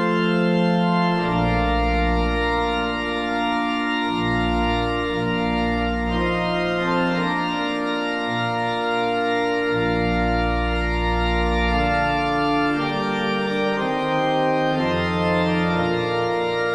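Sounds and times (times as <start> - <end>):
organ playing a bridal march in a cathedral in Jacksonville Florida: 0.0 - 16.7.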